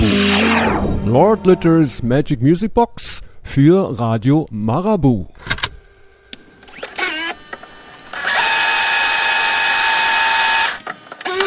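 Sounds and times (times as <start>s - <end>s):
speech: 1.0s - 5.5s
cassette tape spooling in a player: 6.1s - 11.4s.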